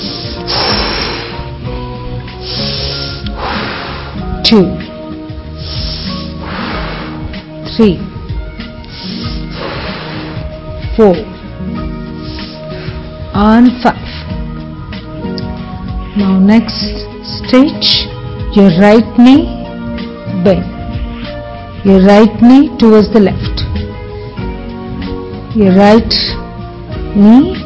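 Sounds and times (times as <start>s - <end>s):
breathing during exercise: 2.4s - 4.2s, 5.6s - 7.2s, 8.9s - 10.4s, 12.2s - 13.1s
speech: 4.5s - 4.8s, 7.8s - 8.1s, 11.0s - 11.8s, 13.4s - 14.0s, 16.2s - 18.0s, 18.6s - 19.6s, 20.4s - 20.7s, 21.8s - 23.4s, 25.5s - 26.4s, 27.1s - 27.6s.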